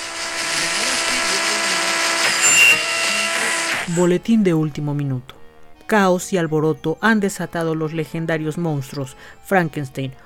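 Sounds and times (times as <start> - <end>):
radio static: 0.0 - 4.2
high whistle as the radio dial is turned: 2.2 - 4.1
speech: 3.9 - 10.2.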